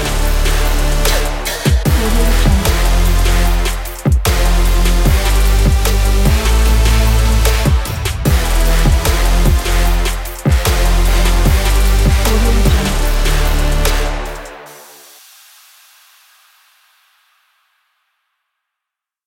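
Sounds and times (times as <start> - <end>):
sport trap racing beat: 0.0 - 14.8.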